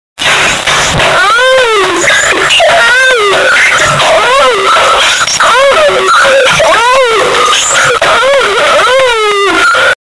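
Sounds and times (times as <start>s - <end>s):
ASMR sounds for sleeping: 0.2s - 10.0s.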